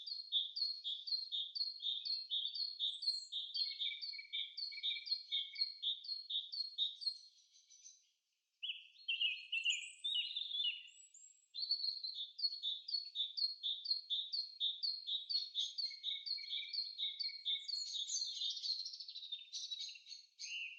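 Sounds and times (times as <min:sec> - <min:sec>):
forest sounds: 0:00.0 - 0:20.7.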